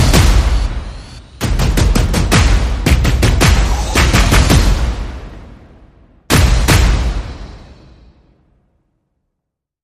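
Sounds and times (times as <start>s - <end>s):
percussion: 0.0s - 5.5s, 6.3s - 7.9s
sound effects: 0.0s - 8.2s.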